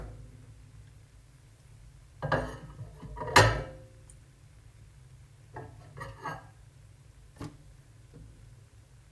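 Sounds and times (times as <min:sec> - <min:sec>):
plate: 0:02.2 - 0:03.9, 0:05.6 - 0:06.6.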